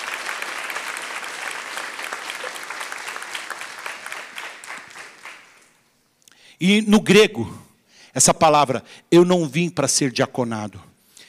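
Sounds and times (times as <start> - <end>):
audience applauding: 0.0 - 5.8
speech: 6.6 - 7.6, 8.2 - 10.9.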